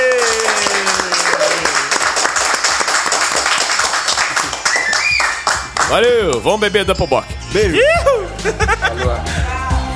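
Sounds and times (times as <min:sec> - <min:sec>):
applause: 0:00.0 - 0:06.4
speech: 0:05.9 - 0:09.6
laughter: 0:07.5 - 0:09.8.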